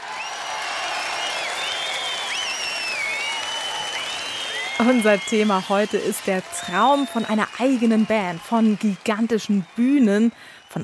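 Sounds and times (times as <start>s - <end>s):
applause: 0.0s - 10.8s
speech: 4.8s - 10.8s.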